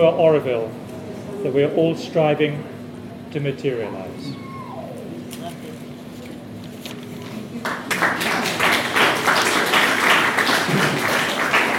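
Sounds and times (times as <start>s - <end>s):
speech: 0.0s - 0.8s, 1.4s - 2.7s, 3.3s - 4.4s
audience applause: 7.5s - 11.7s.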